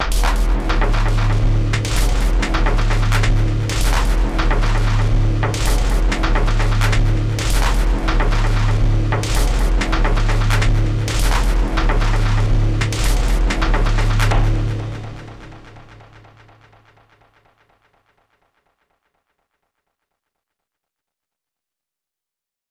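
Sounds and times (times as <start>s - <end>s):
drum: 0.0s - 16.9s.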